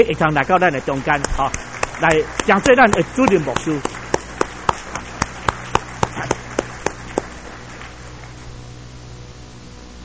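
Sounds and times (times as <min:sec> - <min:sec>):
speech: 0:00.0 - 0:04.0
audience clapping hands: 0:01.1 - 0:08.5.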